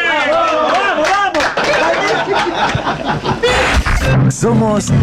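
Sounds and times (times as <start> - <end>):
group clapping: 0.2 - 3.1
people laughing: 0.5 - 3.8
chatter and giggles: 1.6 - 3.7
speech: 4.4 - 5.0.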